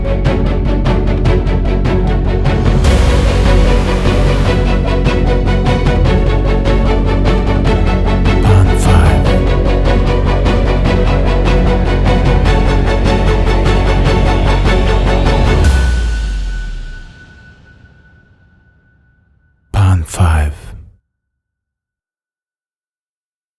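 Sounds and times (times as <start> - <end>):
cinematic movie trailer music: 0.0 - 17.1.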